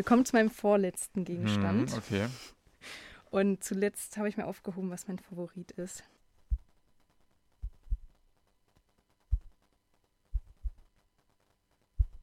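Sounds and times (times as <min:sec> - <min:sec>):
speech: 0:00.0 - 0:06.2
microfiber cloth plucked taut, heartbeat-like thumps: 0:07.6 - 0:08.1, 0:10.4 - 0:10.8.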